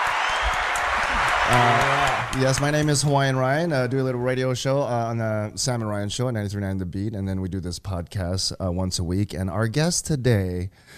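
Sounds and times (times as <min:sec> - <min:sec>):
preset canned crowd applause sound effect: 0:00.0 - 0:04.3
speech: 0:01.5 - 0:10.9.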